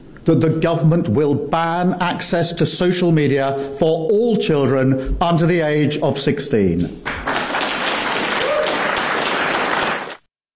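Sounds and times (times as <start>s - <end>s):
speech: 0.2s - 7.3s
round of applause: 7.0s - 10.3s.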